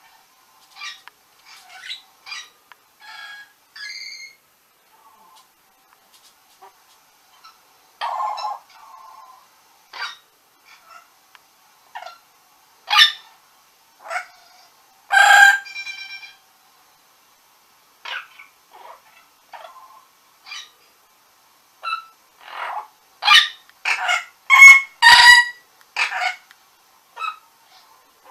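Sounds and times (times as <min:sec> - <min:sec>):
background hiss: 0:00.0 - 0:28.2
orange-winged amazon squawking and chattering: 0:00.7 - 0:04.4, 0:07.3 - 0:11.1, 0:12.9 - 0:13.3, 0:14.0 - 0:16.4, 0:18.0 - 0:20.7, 0:21.8 - 0:26.5, 0:27.2 - 0:27.4.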